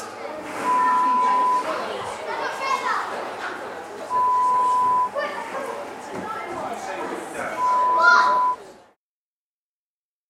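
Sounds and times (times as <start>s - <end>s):
children playing indoors: 0.0s - 8.6s.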